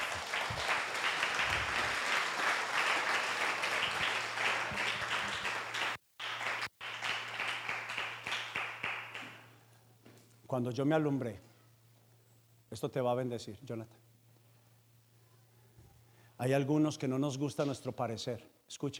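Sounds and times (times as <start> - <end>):
crowd applauding: 0.0 - 9.6
speech: 10.5 - 11.5, 12.7 - 14.0, 16.4 - 18.9.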